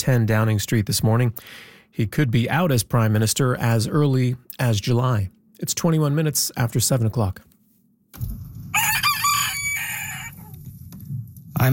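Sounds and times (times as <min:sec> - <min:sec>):
speech: 0:00.0 - 0:07.5, 0:08.1 - 0:08.4, 0:11.6 - 0:11.7
rooster crowing: 0:08.7 - 0:10.6
low rumble: 0:10.1 - 0:11.7.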